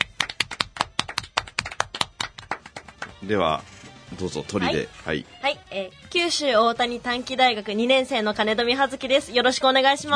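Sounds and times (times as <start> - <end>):
few people clapping: 0.0 - 3.4
speech: 3.2 - 10.1.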